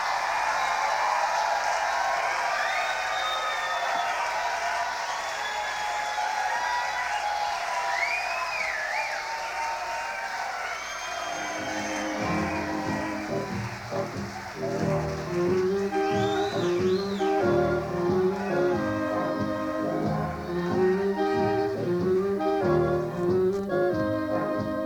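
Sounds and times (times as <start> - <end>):
crowd: 0.0 - 24.7.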